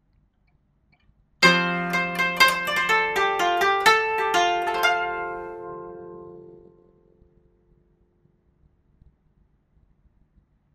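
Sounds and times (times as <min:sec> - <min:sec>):
koto: 0:01.4 - 0:07.2.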